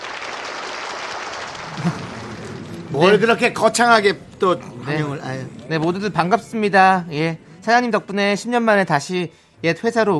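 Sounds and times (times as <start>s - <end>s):
applause: 0.0s - 4.0s
laughter: 1.4s - 7.5s
speech: 1.8s - 2.1s, 2.9s - 10.1s.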